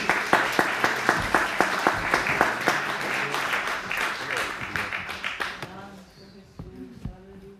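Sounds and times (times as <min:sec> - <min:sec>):
audience applauding: 0:00.0 - 0:05.8.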